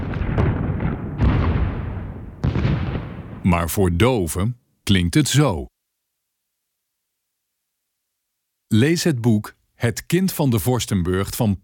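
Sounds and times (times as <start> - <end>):
bombardment explosions: 0.0 - 3.9
speech: 3.4 - 5.7, 8.7 - 11.6.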